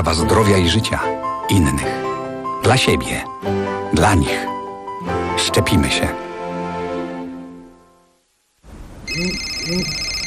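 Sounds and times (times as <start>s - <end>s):
speech: 0.0s - 2.0s, 2.6s - 6.3s, 9.1s - 10.1s
telephone ringing: 9.1s - 10.2s.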